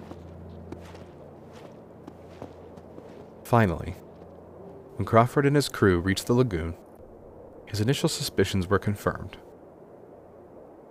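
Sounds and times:
footsteps crunching on snow and ice: 0.0s - 4.9s
low hum: 0.0s - 10.8s
speech: 3.5s - 4.0s, 5.0s - 6.8s, 7.7s - 9.5s.

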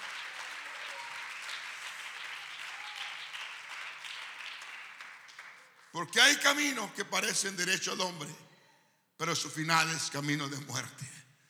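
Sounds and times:
audience applause: 0.0s - 6.6s
speech: 6.0s - 8.4s, 9.2s - 11.2s.

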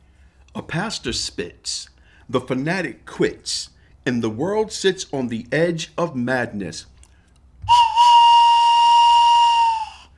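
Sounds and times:
speech: 0.6s - 6.9s
steam train whistle blast: 7.7s - 10.1s.

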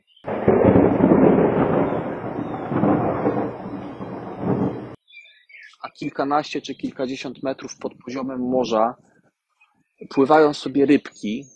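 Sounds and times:
storm with thunder: 0.3s - 5.0s
speech: 6.0s - 9.1s, 10.0s - 11.5s.

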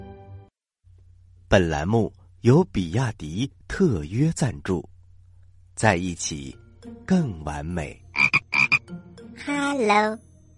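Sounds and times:
speech: 1.5s - 4.9s, 5.8s - 8.0s, 8.9s - 10.3s
frog croaking: 8.1s - 8.9s.

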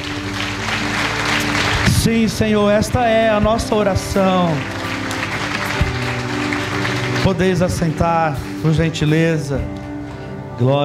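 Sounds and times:
audience applauding: 0.0s - 9.2s
speech: 2.1s - 4.8s, 7.2s - 9.8s, 10.6s - 10.8s.

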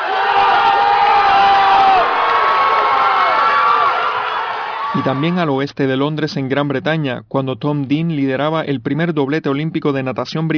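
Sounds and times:
crowd of fans cheering and screaming in a gym: 0.0s - 5.4s
speech: 5.0s - 10.5s.

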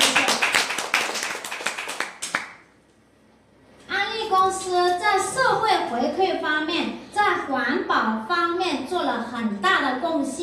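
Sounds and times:
audience clapping: 0.0s - 2.7s
speech: 4.5s - 10.4s.

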